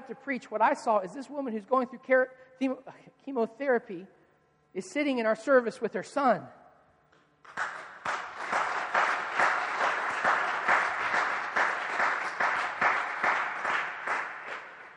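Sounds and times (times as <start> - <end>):
speech: 0.1 - 6.6
audience applause: 7.5 - 14.9.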